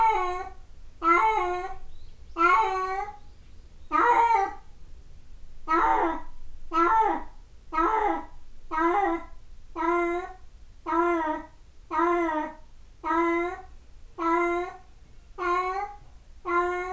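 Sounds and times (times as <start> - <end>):
cat meowing: 0.0 - 1.8, 2.4 - 3.2, 3.9 - 4.6, 5.7 - 14.8, 15.4 - 16.9.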